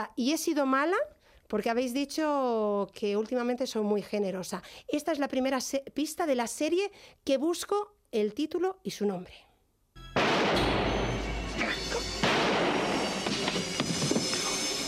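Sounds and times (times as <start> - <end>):
speech: 0.0 - 9.5
gunshots: 10.2 - 11.4, 12.1 - 14.7.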